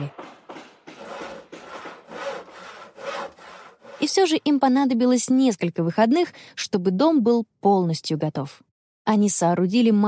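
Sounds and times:
hand saw sawing wood for a treehouse: 0.2s - 4.6s
speech: 4.0s - 10.0s.

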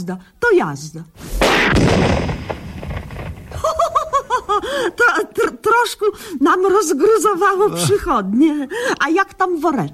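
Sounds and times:
speech: 0.0s - 2.5s, 4.6s - 9.9s
old gas cylinder explosion: 1.3s - 4.8s.

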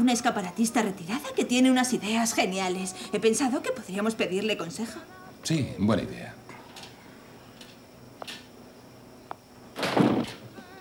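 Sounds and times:
speech: 0.1s - 6.4s
door being closed: 9.8s - 10.6s.

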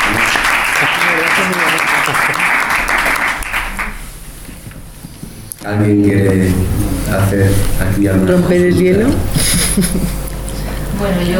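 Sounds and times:
laughter: 0.0s - 3.5s, 9.3s - 10.3s
audience applause: 0.0s - 4.1s
speech: 5.7s - 10.3s, 11.0s - 11.3s.

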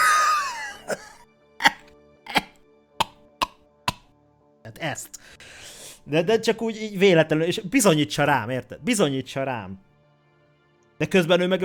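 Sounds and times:
person imitating forced coughs: 0.2s - 2.6s
speech: 4.8s - 5.4s, 6.1s - 9.9s, 11.0s - 11.6s.

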